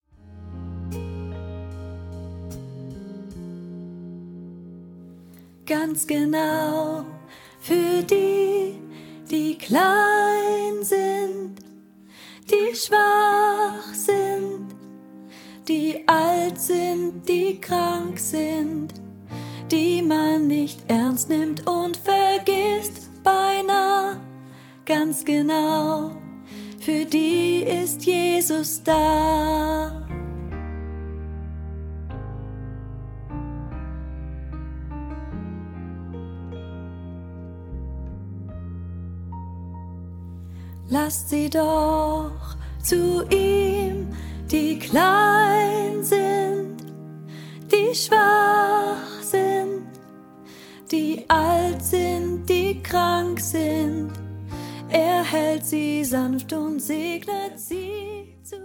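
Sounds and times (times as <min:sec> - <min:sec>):
soprano learning track: 0:05.6 - 0:30.5, 0:40.7 - 0:58.6.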